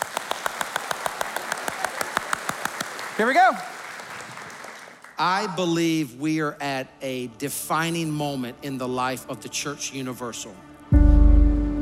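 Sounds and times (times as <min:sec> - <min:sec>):
audience clapping in unison: 0:00.0 - 0:05.6
speech: 0:03.2 - 0:03.7, 0:05.2 - 0:10.7.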